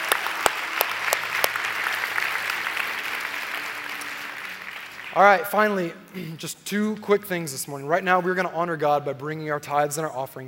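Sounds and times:
church congregation clapping to welcome people: 0.0 - 5.9
speech: 5.2 - 10.4.

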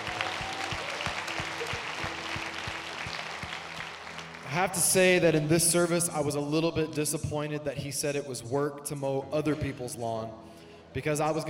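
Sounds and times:
church congregation applauding: 0.0 - 5.9
speech: 4.5 - 11.4.

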